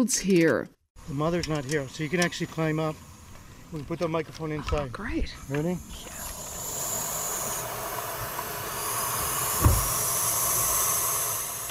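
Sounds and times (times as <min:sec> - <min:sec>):
speech: 0:00.0 - 0:03.1, 0:03.7 - 0:06.3
baby owls hissing in a nest box: 0:05.3 - 0:11.6
low thump: 0:09.6 - 0:10.0.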